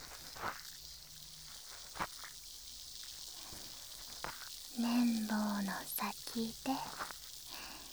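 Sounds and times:
steady quiet fizzing hiss: 0.0s - 7.9s
speech: 4.8s - 7.1s.

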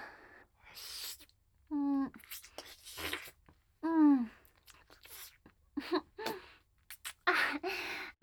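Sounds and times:
oral sex sounds: 0.7s - 8.1s
ear licking: 4.5s - 5.5s, 6.2s - 7.3s.

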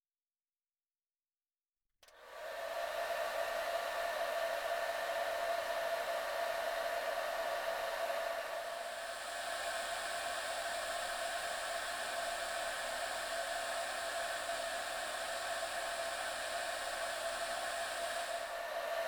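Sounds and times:
hair dryer drying a person's hair: 2.0s - 19.0s.

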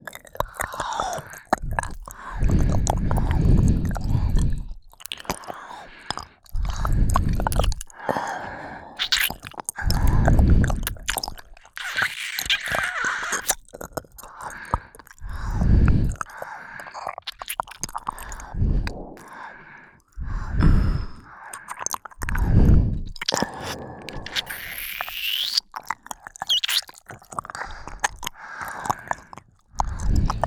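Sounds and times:
ear licking by two people: 0.0s - 30.4s.

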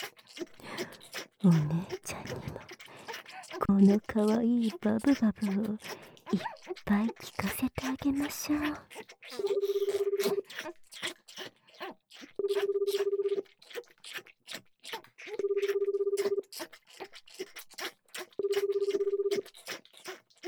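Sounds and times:
speech: 1.4s - 1.9s, 3.7s - 9.0s
telephone ringback tones: 9.5s - 10.4s, 12.4s - 13.4s, 15.4s - 16.4s, 18.4s - 19.4s.

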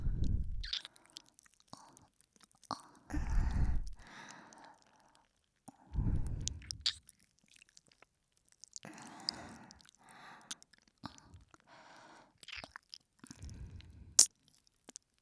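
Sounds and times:
licking both ears in ASMR: 0.0s - 1.0s, 6.0s - 7.1s, 8.6s - 11.7s, 12.4s - 14.3s.

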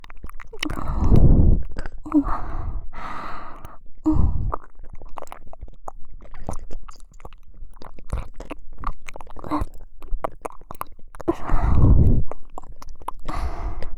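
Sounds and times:
ASMR ear licking in the right ear: 0.0s - 13.9s.

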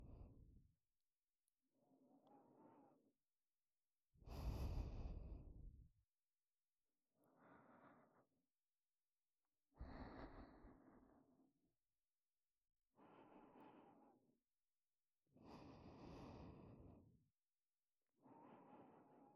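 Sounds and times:
breathing in ASMR on the right side: 2.0s - 3.0s, 4.2s - 5.8s, 7.2s - 8.3s, 9.7s - 11.6s, 12.9s - 14.4s, 15.4s - 17.2s, 18.2s - 19.3s.

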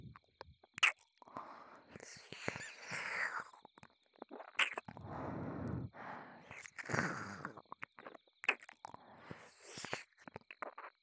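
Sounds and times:
ASMR ear licking sounds: 0.1s - 1.2s, 1.9s - 5.0s, 6.4s - 11.0s.

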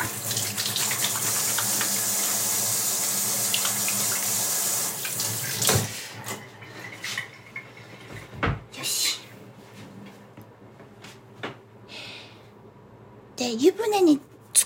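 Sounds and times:
running tap water pouring into a sink: 0.0s - 8.2s
speech: 13.4s - 14.2s.

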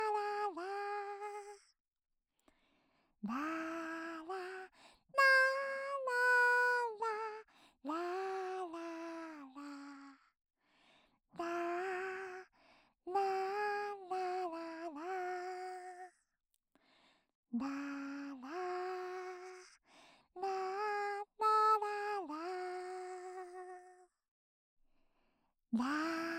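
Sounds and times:
lullaby without reverb: 0.0s - 1.8s, 3.3s - 10.3s, 11.4s - 12.5s, 13.1s - 16.3s, 17.6s - 19.8s, 20.4s - 24.2s, 25.8s - 26.3s.

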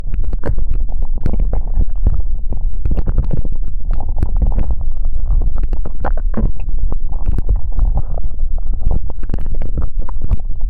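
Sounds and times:
slime cleaning left ear: 0.1s - 10.6s.

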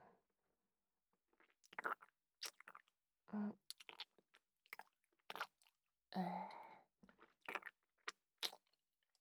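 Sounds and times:
ear licking: 1.7s - 2.9s, 3.7s - 5.7s, 7.4s - 7.7s, 8.4s - 8.6s.

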